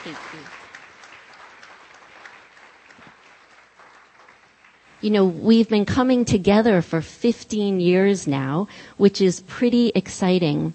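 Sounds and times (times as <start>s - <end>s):
speech: 0.0s - 0.6s, 5.0s - 10.7s
audience applause: 0.0s - 5.0s.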